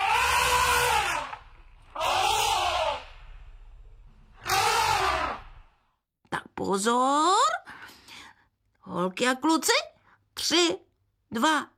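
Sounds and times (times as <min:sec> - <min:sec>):
elephant trumpeting: 0:00.0 - 0:05.8
speech: 0:06.6 - 0:07.6, 0:08.9 - 0:11.7.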